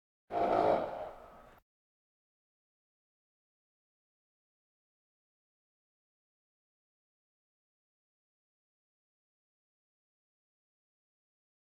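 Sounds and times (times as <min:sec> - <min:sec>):
farm animal snorts: 0:00.3 - 0:01.2.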